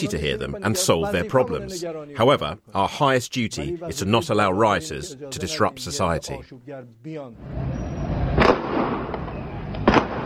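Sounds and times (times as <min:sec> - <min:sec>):
speech: 0:00.0 - 0:08.0
steady noisy street rumble: 0:07.4 - 0:10.2
gunfire from security forces: 0:08.3 - 0:10.2.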